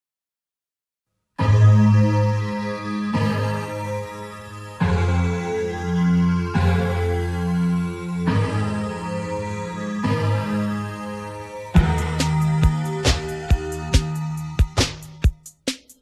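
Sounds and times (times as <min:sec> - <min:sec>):
bass in standard tuning: 0:01.4 - 0:15.5.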